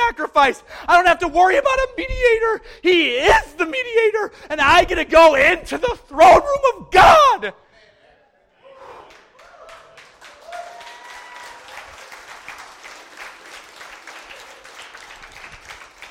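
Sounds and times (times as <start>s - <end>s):
speech: 0.4s - 7.6s
audience applause: 9.0s - 16.0s.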